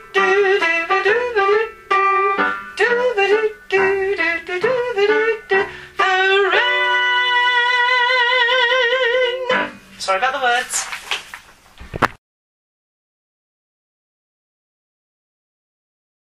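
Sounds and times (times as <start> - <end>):
soprano singing: 0.0 - 10.5.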